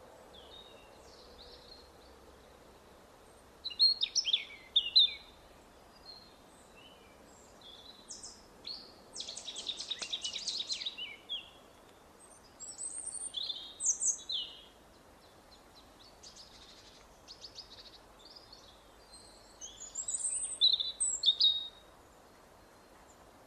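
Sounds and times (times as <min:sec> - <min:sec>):
European robin Erithacus rubecula singing: 0:03.3 - 0:23.2.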